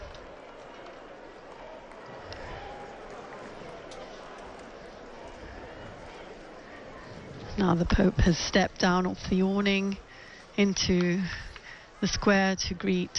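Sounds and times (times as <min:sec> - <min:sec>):
crowd chanting acclamations: 0:00.0 - 0:07.2
speech: 0:07.6 - 0:10.0, 0:10.6 - 0:13.1.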